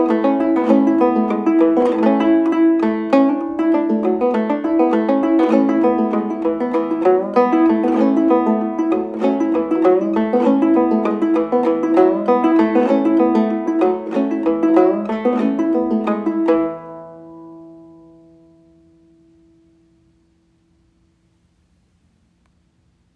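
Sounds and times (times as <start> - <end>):
gourd percussion: 0.0 - 17.4.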